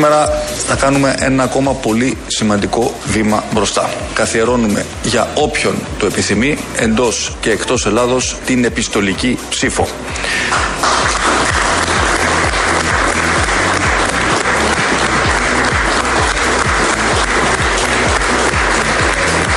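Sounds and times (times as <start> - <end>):
speech: 0.0 - 11.1
audience applause: 10.4 - 19.5.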